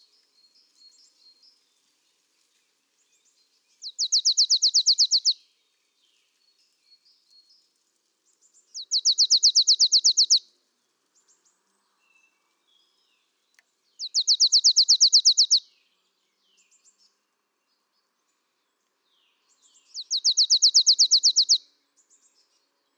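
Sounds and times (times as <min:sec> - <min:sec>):
marsh tit Poecile palustris calling: 0:04.0 - 0:05.3, 0:08.9 - 0:10.4, 0:14.1 - 0:15.6, 0:20.0 - 0:21.6.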